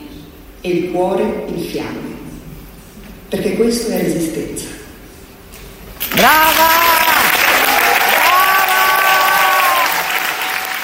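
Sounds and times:
speech: 0.6s - 2.2s, 3.3s - 4.8s
standing ovation from artists and journalists in the Sala delle Colonne: 6.0s - 10.8s.

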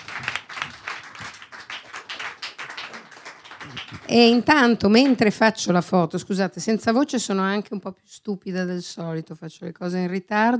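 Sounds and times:
audience applause: 0.0s - 5.2s
speech: 3.7s - 10.5s.

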